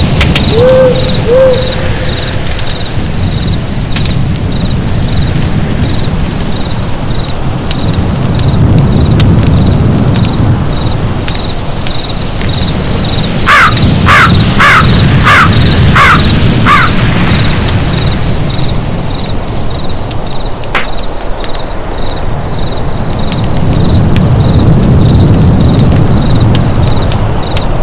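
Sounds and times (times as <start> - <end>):
fire: 0.0 - 27.8
wind: 0.0 - 27.8.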